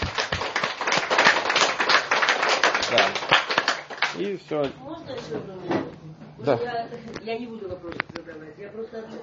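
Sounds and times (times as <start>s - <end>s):
audience members clapping for one another: 0.0s - 4.3s
speech: 2.9s - 3.4s, 4.1s - 9.2s.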